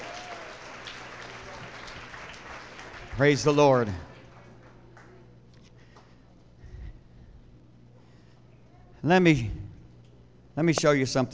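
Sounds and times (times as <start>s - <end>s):
audience crowd hand clapping: 0.0s - 6.1s
speech: 3.2s - 4.1s, 9.0s - 9.6s, 10.6s - 11.3s.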